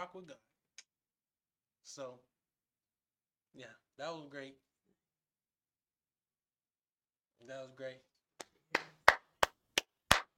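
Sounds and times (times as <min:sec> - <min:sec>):
speech: 0:00.1 - 0:00.6, 0:01.8 - 0:02.3, 0:03.5 - 0:04.7, 0:07.4 - 0:08.1
hands clapping for the guests: 0:08.4 - 0:10.3.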